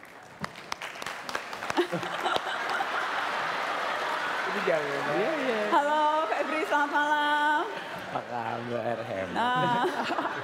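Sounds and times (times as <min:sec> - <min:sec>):
audience applause for surprise guest: 0:00.0 - 0:08.2
laughter: 0:01.8 - 0:10.4
speech: 0:01.9 - 0:02.2, 0:04.6 - 0:06.0, 0:08.1 - 0:10.4.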